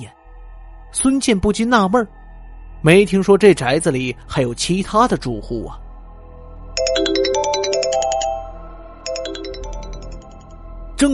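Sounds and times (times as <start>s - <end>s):
speech: 0.9s - 2.2s, 2.8s - 5.8s, 11.0s - 11.1s
mobile phone ringtone: 6.8s - 10.5s.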